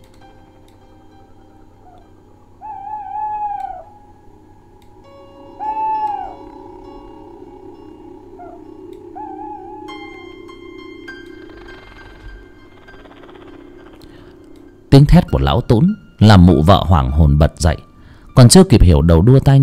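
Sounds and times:
owl screeching eerily: 0:01.7 - 0:04.1, 0:05.3 - 0:14.5
speech: 0:15.0 - 0:19.6.

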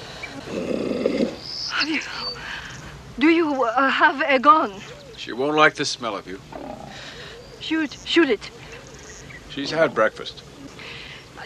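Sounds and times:
steady hiss: 0:00.0 - 0:11.4
bright high chirping calls: 0:00.2 - 0:11.4
speech: 0:00.4 - 0:00.7, 0:01.8 - 0:02.2, 0:03.2 - 0:06.6, 0:07.6 - 0:08.6, 0:09.6 - 0:10.5
lioness walking forward roaring: 0:00.4 - 0:01.4, 0:06.5 - 0:07.2.

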